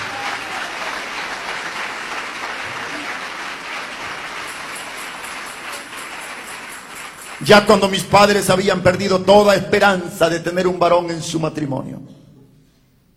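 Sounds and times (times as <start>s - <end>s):
audience applauding: 0.0s - 8.5s
speech: 7.4s - 12.2s.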